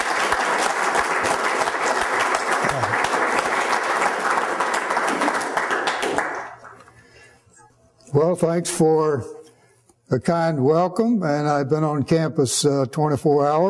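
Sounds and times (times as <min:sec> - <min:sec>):
audience applause: 0:00.0 - 0:06.8
speech: 0:08.2 - 0:09.4, 0:10.1 - 0:13.6.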